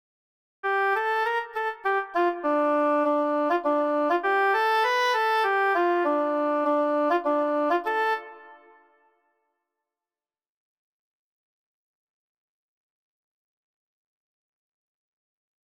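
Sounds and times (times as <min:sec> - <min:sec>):
oboe: 0:00.7 - 0:09.0.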